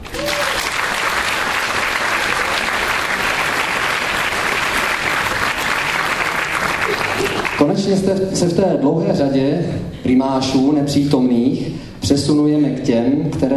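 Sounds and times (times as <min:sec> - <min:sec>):
audience applause: 0:00.0 - 0:07.8
speech: 0:07.9 - 0:13.5.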